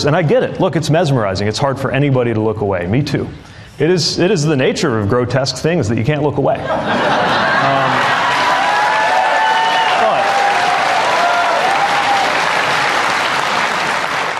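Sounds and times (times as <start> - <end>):
speech: 0.0 - 7.5
laughter: 6.6 - 8.8
audience applause: 7.4 - 14.3.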